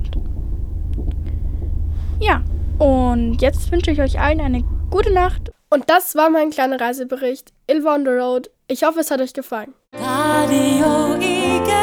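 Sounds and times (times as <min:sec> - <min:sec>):
faint clicks and rattles: 0:00.0 - 0:05.5
night train rumbling while travelling: 0:00.0 - 0:05.5
speech: 0:02.2 - 0:11.8.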